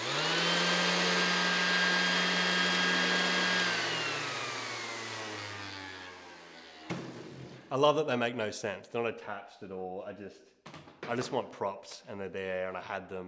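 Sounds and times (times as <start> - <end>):
electric sander whirring: 0.0 - 7.7
sander switch click: 2.6 - 2.9
speech: 7.7 - 13.2.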